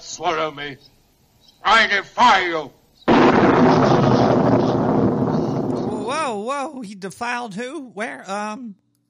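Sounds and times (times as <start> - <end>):
speech: 0.1 - 1.0, 1.6 - 4.1, 6.1 - 8.8
lightning crash thunder sound effect: 3.1 - 6.1.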